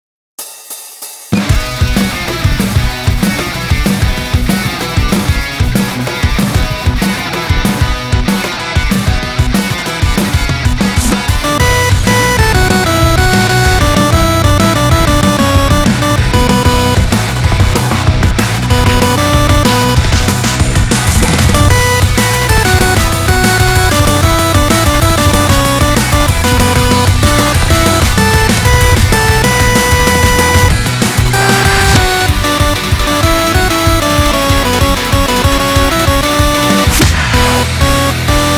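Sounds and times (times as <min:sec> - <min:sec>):
rock music: 0:01.4 - 0:38.5.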